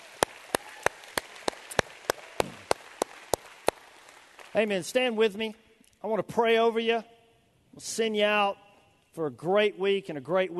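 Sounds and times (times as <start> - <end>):
audience hand clapping: 0.0 - 4.7
speech: 4.6 - 7.1, 7.8 - 8.6, 9.2 - 10.5.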